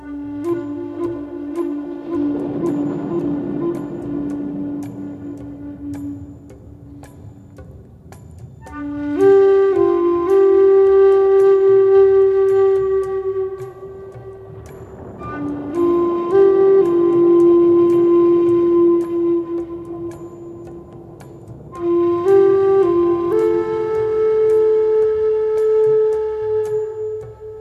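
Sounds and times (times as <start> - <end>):
relaxing Native American flute music: 0.0 - 27.5
thunder: 0.1 - 7.7, 11.2 - 27.5.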